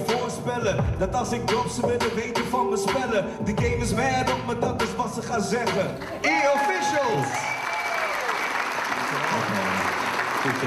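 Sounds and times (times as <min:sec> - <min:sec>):
speech: 0:00.5 - 0:07.6
audience applause: 0:06.2 - 0:10.6.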